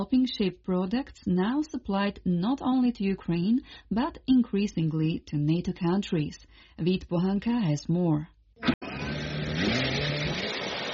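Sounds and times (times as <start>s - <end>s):
speech: 0.0s - 8.8s
military drones buzzing: 8.6s - 10.9s.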